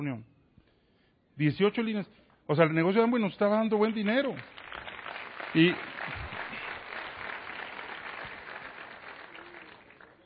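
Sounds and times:
speech: 0:00.0 - 0:00.3, 0:01.4 - 0:04.6, 0:05.5 - 0:05.9
audience applause: 0:03.9 - 0:10.2.

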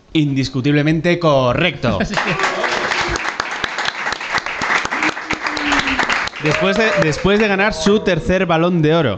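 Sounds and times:
speech: 0:00.1 - 0:02.8, 0:06.4 - 0:09.1
laughter: 0:02.1 - 0:03.5, 0:04.8 - 0:08.0
dense steady audience applause: 0:02.2 - 0:08.0
crowd shouting and cheering: 0:04.8 - 0:08.4.

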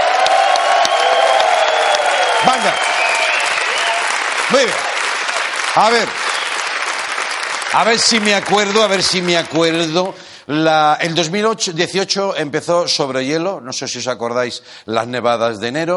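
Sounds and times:
audience applause: 0:00.0 - 0:10.2
speech: 0:02.5 - 0:03.0, 0:04.5 - 0:04.9, 0:05.8 - 0:06.2, 0:07.7 - 0:15.9.

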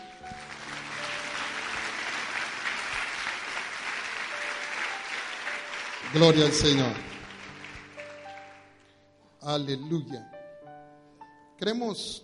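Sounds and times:
audience applause: 0:00.0 - 0:08.8
speech: 0:06.1 - 0:07.1, 0:09.5 - 0:10.3, 0:11.6 - 0:12.2.

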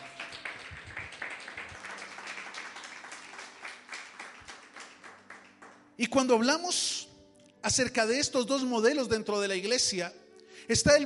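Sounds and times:
audience applause: 0:00.0 - 0:05.8
speech: 0:06.0 - 0:11.0.

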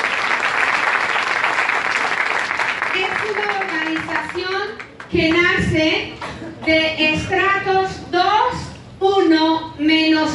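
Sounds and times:
audience applause: 0:00.0 - 0:05.1
speech: 0:03.2 - 0:10.3.

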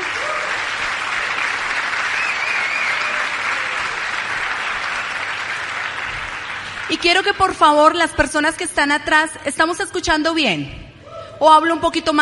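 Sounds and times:
loud audience applause: 0:00.0 - 0:07.1
speech: 0:06.9 - 0:10.8, 0:11.4 - 0:12.1.

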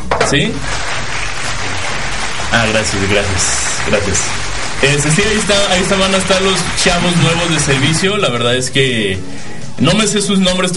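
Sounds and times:
speech: 0:00.3 - 0:00.7, 0:02.5 - 0:10.7
applause sound effect: 0:00.5 - 0:08.6.

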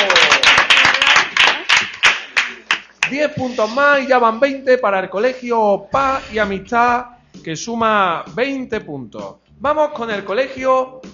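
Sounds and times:
audience applause: 0:00.0 - 0:02.8
speech: 0:03.1 - 0:11.1.

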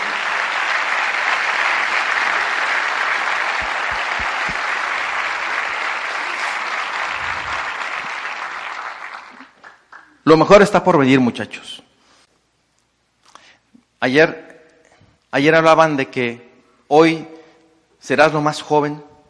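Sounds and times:
audience applause: 0:00.0 - 0:10.2
speech: 0:10.3 - 0:11.8, 0:14.0 - 0:14.5, 0:15.3 - 0:17.4, 0:18.0 - 0:19.1.

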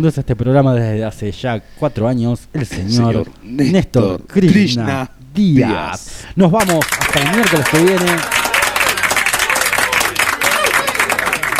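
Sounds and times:
speech: 0:00.0 - 0:08.5
studio audience applause at the close of a show: 0:06.6 - 0:11.5.

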